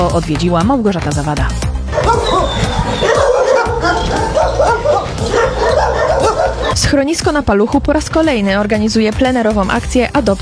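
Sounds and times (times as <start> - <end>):
speech: 0.0 - 3.1, 6.7 - 10.4
dogs barking at an animal shelter: 1.9 - 6.9.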